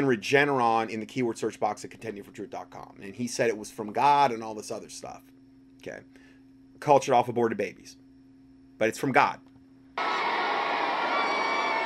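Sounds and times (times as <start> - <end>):
speech: 0.0 - 6.2, 6.8 - 8.0, 8.8 - 10.1
crowd cheering: 10.0 - 11.8.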